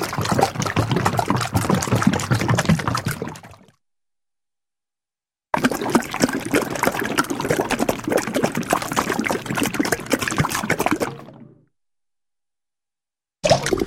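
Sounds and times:
single and double bubbles blowing with heavy bloop: 0.0 - 3.8, 5.6 - 11.7, 13.4 - 13.8.

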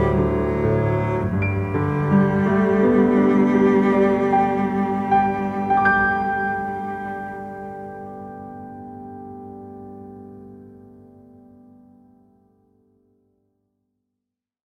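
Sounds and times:
cello in a piano and cello duet: 0.0 - 11.3
piano in a piano and cello duet: 0.0 - 13.7.

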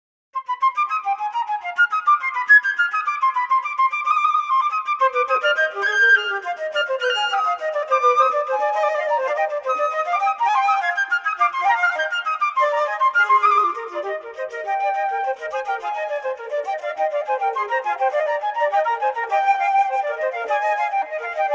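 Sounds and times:
two-part invention on two flutes: 0.4 - 21.5.

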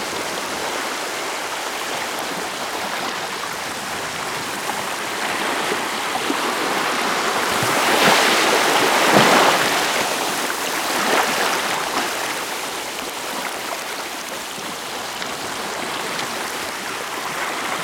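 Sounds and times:
waves breaking on the shore: 0.0 - 17.8.

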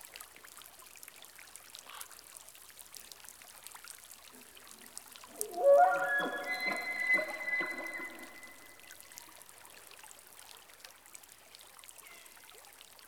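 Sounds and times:
elk in rainforest: 5.3 - 9.0.

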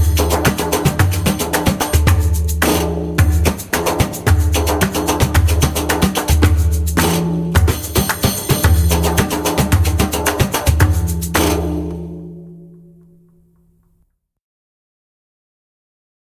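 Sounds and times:
fast long maqsum rhythm on djembe: 0.0 - 12.7.

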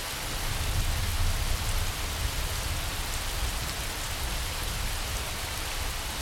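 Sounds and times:
thunderstorm: 0.2 - 6.1.

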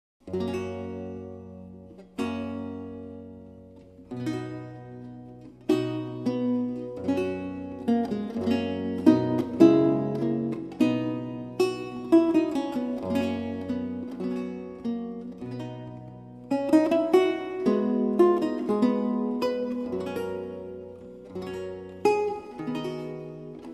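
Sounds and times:
recercar on renaissance lute: 0.2 - 23.7.

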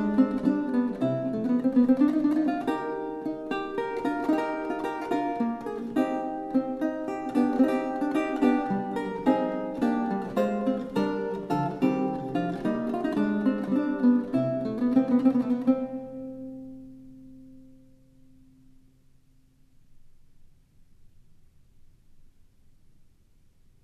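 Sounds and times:
galliard dance piece on lute: 0.0 - 18.8.

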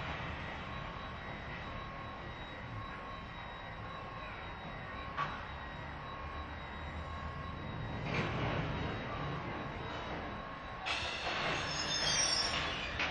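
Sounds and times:
medium train station activity at an Underground station: 0.0 - 13.0.

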